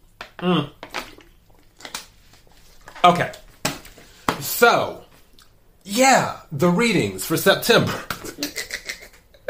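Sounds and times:
speech: 0.4s - 0.8s, 3.0s - 3.4s, 4.4s - 5.0s, 5.8s - 8.5s
person sipping and gulping water: 0.4s - 2.0s.

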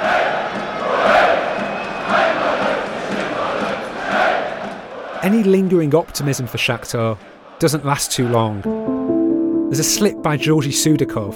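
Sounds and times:
football supporters chanting inside a stadium in Warsaw: 0.0s - 6.2s, 6.8s - 8.6s
speech: 5.2s - 9.0s, 9.7s - 11.3s.

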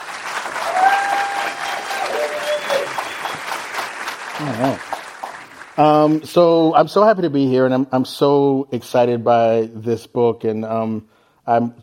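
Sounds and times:
audience applause at a book talk: 0.0s - 6.3s
speech: 4.4s - 5.0s, 5.8s - 11.8s.

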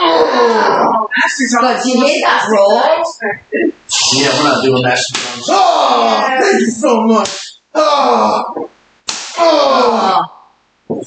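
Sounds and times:
speech: 0.4s - 8.7s, 9.4s - 10.3s
resin paddle smack: 9.1s - 9.4s.

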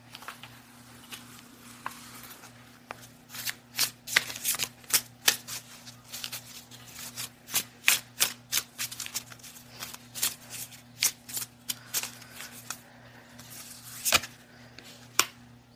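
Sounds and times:
low steady hum: 0.0s - 15.7s
Spirits and Shadows Oracle card deck being shuffled: 1.1s - 12.8s.

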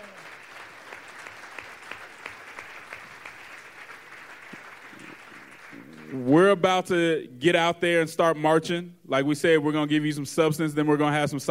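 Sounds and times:
audience applause: 0.0s - 6.3s
speech: 6.1s - 11.4s.

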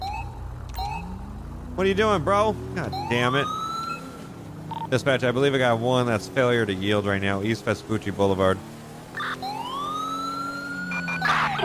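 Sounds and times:
electronic police siren wailing: 0.0s - 5.0s, 9.0s - 11.6s
speech: 1.8s - 3.6s, 4.9s - 8.7s.

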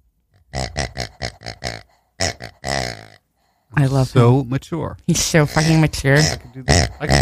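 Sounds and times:
green farty pig toy farting: 0.4s - 3.2s, 5.5s - 7.2s
speech: 3.8s - 7.2s.

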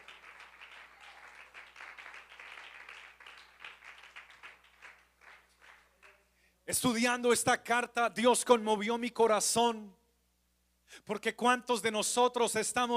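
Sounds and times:
audience applauding: 0.0s - 6.2s
speech: 6.7s - 10.0s, 11.0s - 12.9s.

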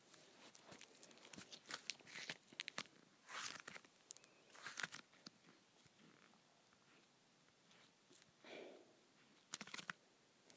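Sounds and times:
putty being pulled apart, crackling and squelching: 0.4s - 6.4s, 9.5s - 10.0s.

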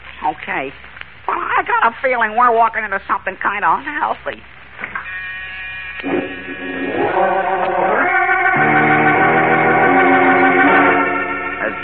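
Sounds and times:
speech: 0.3s - 4.6s
door buzzer sounding in a rear office: 5.0s - 11.8s.

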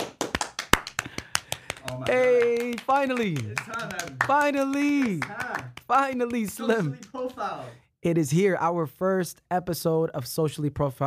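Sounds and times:
hand claps: 0.0s - 7.4s
speech: 1.9s - 11.0s.

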